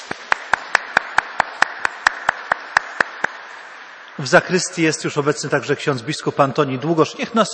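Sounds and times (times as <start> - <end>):
church audience applause: 0.0 - 3.6
speech: 4.2 - 7.5.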